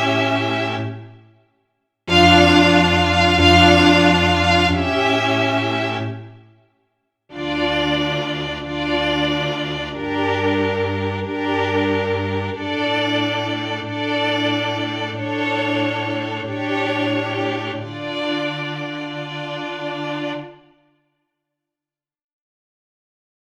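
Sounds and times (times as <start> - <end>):
violin concerto in G minor largo: 2.1 - 6.2, 7.4 - 20.6.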